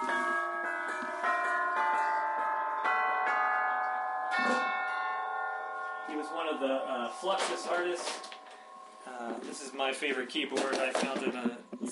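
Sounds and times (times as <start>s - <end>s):
orchestral chimes being struck: 0.0s - 11.9s
speech: 6.4s - 8.3s, 9.0s - 11.9s.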